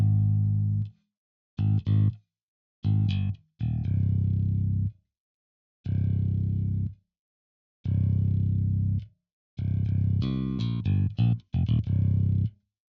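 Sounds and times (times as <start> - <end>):
bass: 0.0 - 1.0, 1.6 - 2.2, 2.8 - 5.0, 5.8 - 7.0, 7.8 - 12.6.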